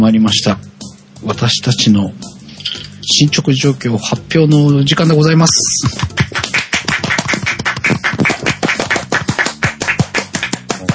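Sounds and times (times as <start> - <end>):
speech: 0.1 - 6.2
hand clapping from more than one person: 5.8 - 10.9.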